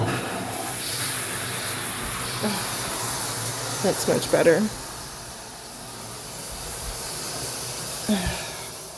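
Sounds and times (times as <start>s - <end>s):
shower water spraying: 0.2s - 8.9s
speech: 3.8s - 4.8s, 8.1s - 8.4s.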